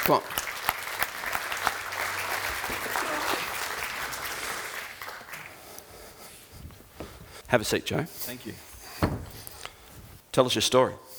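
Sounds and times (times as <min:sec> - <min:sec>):
speech: 0:00.0 - 0:00.4, 0:07.5 - 0:09.1, 0:10.4 - 0:11.1
audience applause welcoming a guest on stage: 0:00.0 - 0:05.8.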